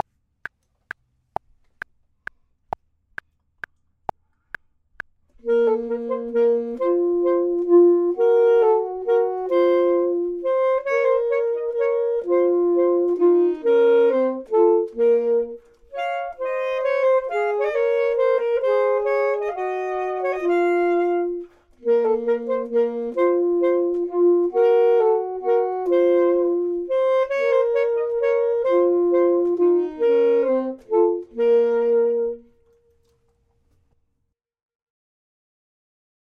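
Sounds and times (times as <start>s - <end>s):
saxophone: 5.4s - 33.3s
clarinet: 5.4s - 33.4s.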